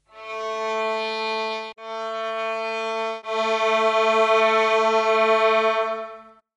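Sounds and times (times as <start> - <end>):
violin: 0.0 - 6.4.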